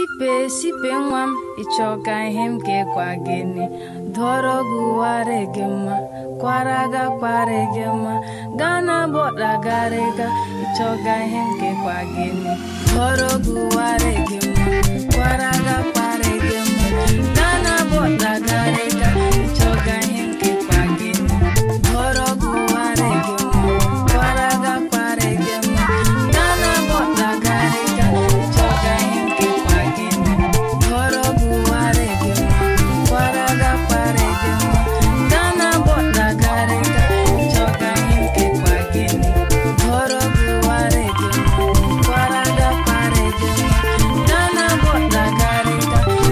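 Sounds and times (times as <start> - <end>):
Igbo highlife music: 0.1 - 46.3.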